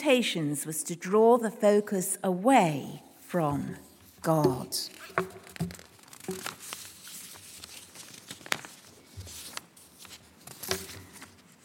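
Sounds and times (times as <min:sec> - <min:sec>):
speech: 0:00.0 - 0:06.6
paper pages rustling while searching for a lost last page: 0:04.0 - 0:11.6.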